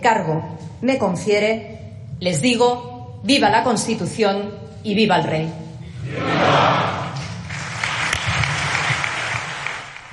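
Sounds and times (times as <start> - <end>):
speech: 0.0 - 7.0
ovation, audience applauding: 7.4 - 10.1.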